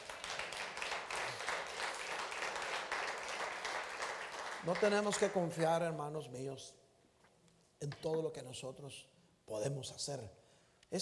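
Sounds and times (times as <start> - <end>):
audience applause: 0.0 - 5.4
speech: 4.6 - 6.8, 7.8 - 10.9.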